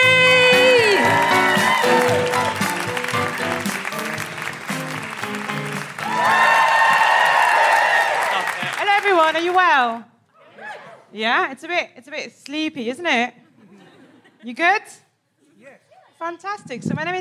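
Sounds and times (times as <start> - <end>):
live comedy audience at the Edinburgh Fringe clapping and whooping: 0.0 - 10.0
melodic tune: 0.6 - 6.0
speech: 9.8 - 10.1, 11.1 - 13.4, 14.4 - 15.0, 15.6 - 17.2.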